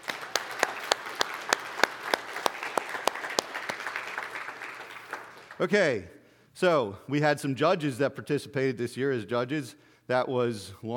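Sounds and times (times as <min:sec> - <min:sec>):
audience clapping: 0:00.0 - 0:05.8
speech: 0:05.6 - 0:10.9.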